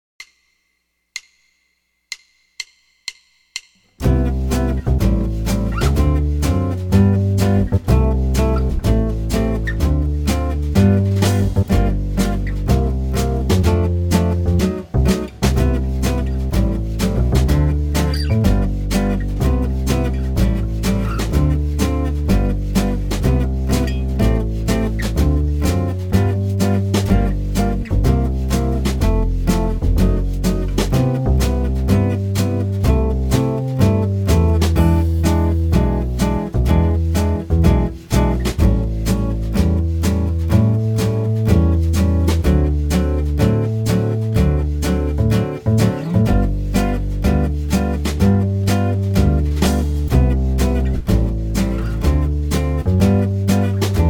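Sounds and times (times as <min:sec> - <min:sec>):
jazz guitar playing a 32-bar rhythm changes form: 0:04.0 - 0:54.0.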